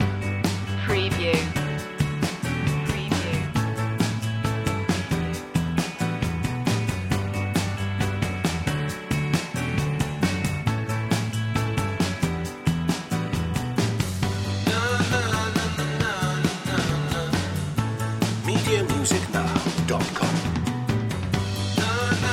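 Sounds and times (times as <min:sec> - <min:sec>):
pop music loop: 0:00.0 - 0:22.3.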